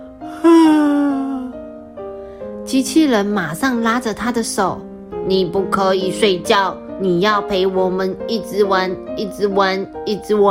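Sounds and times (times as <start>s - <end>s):
big yawn: 0.3s - 1.5s
speech: 2.7s - 10.4s.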